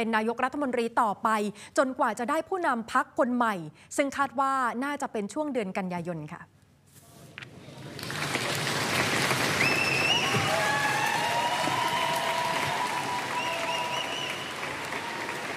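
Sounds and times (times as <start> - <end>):
speech: 0.0 - 6.6
loud applause and cheering: 7.7 - 15.5.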